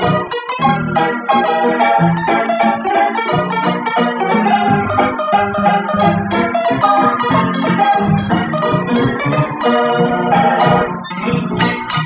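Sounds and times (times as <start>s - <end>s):
Wurlitzer piano playing: 0.0s - 12.0s.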